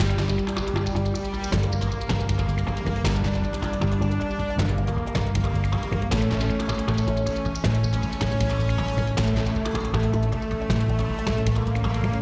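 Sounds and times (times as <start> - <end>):
platforming game music: 0.0 - 12.2.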